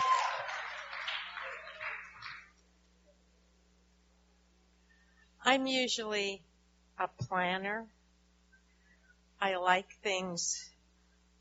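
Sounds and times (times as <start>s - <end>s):
audience applause: 0.0s - 2.6s
speech: 5.5s - 8.0s, 9.4s - 10.7s.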